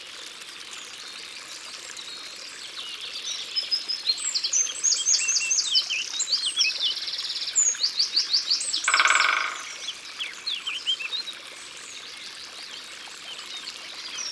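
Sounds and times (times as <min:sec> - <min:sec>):
dense high songbird twittering and trills: 0:02.0 - 0:14.3
Great spotted woodpecker rapid drum roll: 0:08.8 - 0:10.0.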